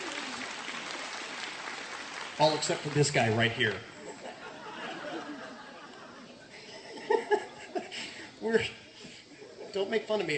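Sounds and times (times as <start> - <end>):
audience applauding: 0.0 - 5.4
speech: 2.4 - 3.9, 8.5 - 8.8, 9.8 - 10.3
laughter: 3.6 - 10.1.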